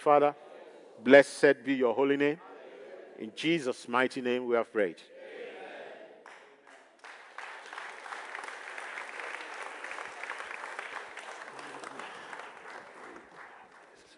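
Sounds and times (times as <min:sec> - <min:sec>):
speech: 0:00.0 - 0:02.5, 0:03.2 - 0:05.1
audience clapping: 0:06.2 - 0:14.1.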